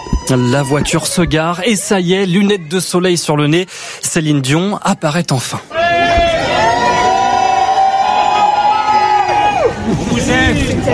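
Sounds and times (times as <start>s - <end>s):
crowd cheering and shouting: 0.0s - 3.7s, 5.7s - 10.9s
speech: 0.3s - 6.3s.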